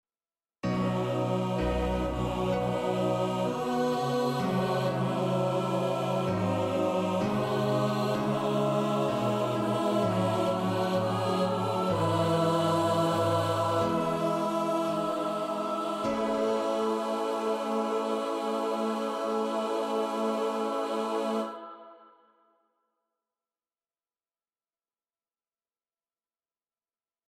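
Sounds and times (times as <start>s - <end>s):
choir singing: 0.6s - 22.3s.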